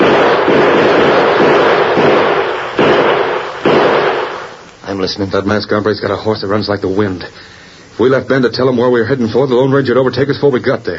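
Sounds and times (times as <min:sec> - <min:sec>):
gunshots fired from a window: 0:00.0 - 0:04.7
speech: 0:05.0 - 0:10.9.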